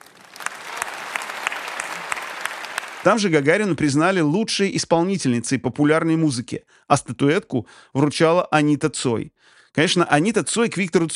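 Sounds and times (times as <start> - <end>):
audience applause at an awards ceremony: 0.0 - 3.6
speech: 3.0 - 11.1.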